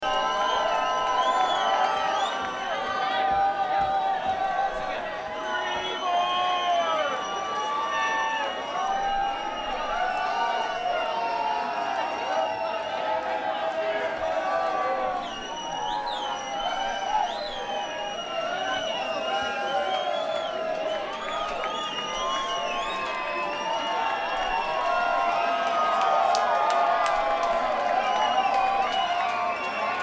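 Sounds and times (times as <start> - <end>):
crowd: 0.0 - 30.0.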